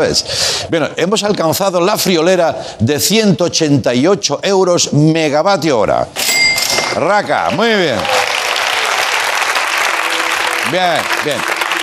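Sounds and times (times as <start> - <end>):
speech: 0.0 - 8.3, 10.7 - 11.5
applause: 7.5 - 11.8.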